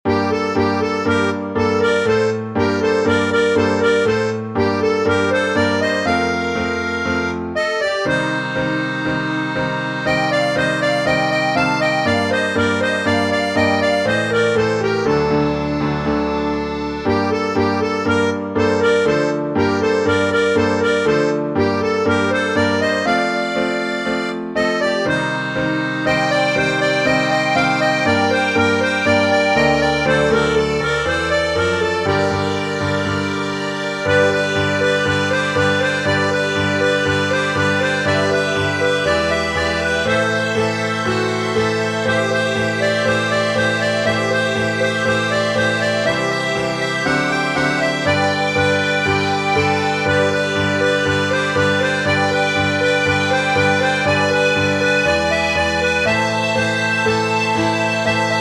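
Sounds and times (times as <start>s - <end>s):
tango music: 0.0s - 58.3s.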